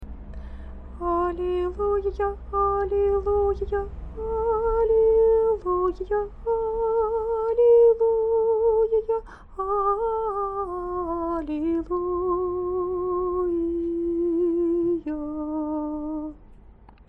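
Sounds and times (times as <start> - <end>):
people singing praise: 1.0 - 16.4.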